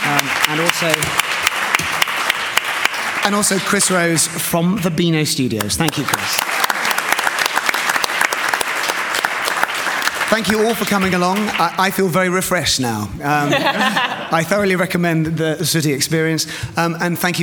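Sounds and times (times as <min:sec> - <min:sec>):
audience applause: 0:00.0 - 0:04.3, 0:05.8 - 0:12.0
speech: 0:00.1 - 0:01.3, 0:03.2 - 0:06.5, 0:10.3 - 0:17.4
laughter: 0:13.2 - 0:14.6.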